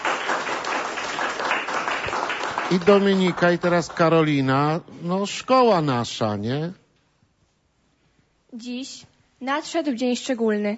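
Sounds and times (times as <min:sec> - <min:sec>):
audience clapping at a school anniversary celebration: 0:00.0 - 0:04.8
speech: 0:02.7 - 0:06.8, 0:08.6 - 0:10.7.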